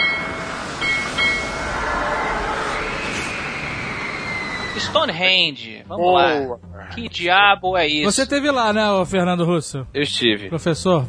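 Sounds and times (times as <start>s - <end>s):
high metallic squeal of a train on rails: 0.0s - 5.6s
train rolling along rails: 0.0s - 5.6s
speech: 4.8s - 11.0s.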